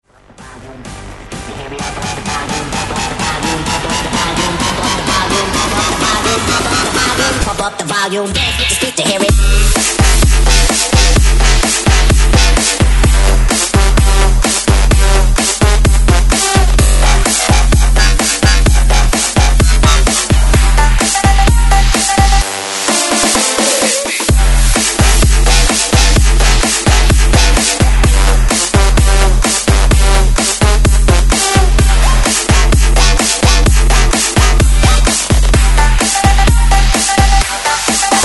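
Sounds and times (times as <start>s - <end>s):
breakbeat mix at 128 BPM: 0.0s - 38.2s.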